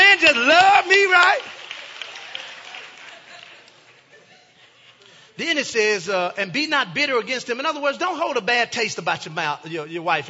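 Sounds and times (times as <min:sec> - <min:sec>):
audience hand clapping: 0:00.0 - 0:04.1
laughter: 0:02.7 - 0:05.4
speech: 0:05.4 - 0:10.2.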